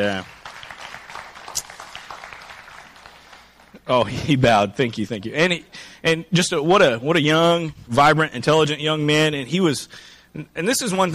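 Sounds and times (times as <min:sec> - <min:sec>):
speech: 0:00.0 - 0:00.4, 0:03.9 - 0:11.1
audience applause: 0:00.0 - 0:04.1.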